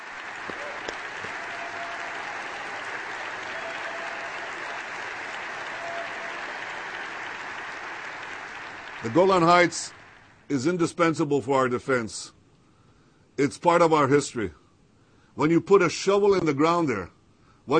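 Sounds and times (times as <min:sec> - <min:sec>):
audience applause: 0:00.0 - 0:10.4
speech: 0:09.0 - 0:12.4, 0:13.4 - 0:14.6, 0:15.4 - 0:17.7.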